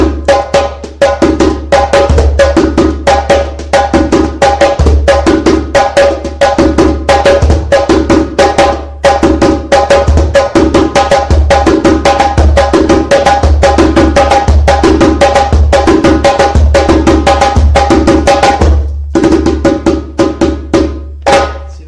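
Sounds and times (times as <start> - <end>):
rhythmic music: 0.0 - 21.8.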